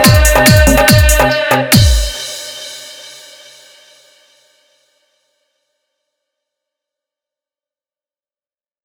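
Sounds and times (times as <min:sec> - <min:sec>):
dholak with bass mix: 0:00.0 - 0:02.9.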